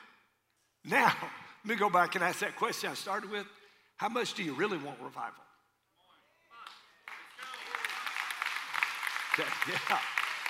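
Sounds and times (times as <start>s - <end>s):
speech: 0.8s - 5.5s, 9.4s - 10.2s
golf clap from the audience: 6.6s - 10.4s.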